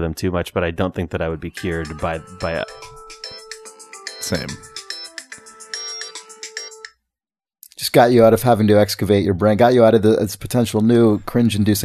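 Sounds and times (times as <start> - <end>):
speech: 0.0 - 3.4, 4.3 - 4.7, 7.9 - 11.8
phone ringtone electronic melody: 1.6 - 7.0.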